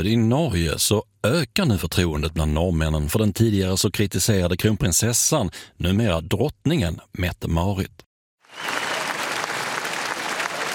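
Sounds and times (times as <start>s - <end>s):
speech: 0.0s - 8.8s
crowd cheering and applauding at the royal palace balcony in Norway: 8.4s - 10.7s.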